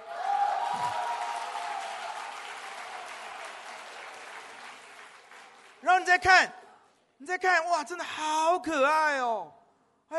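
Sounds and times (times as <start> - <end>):
applause: 0.0 - 6.5
speech: 0.8 - 1.0, 6.0 - 6.6, 7.2 - 9.6.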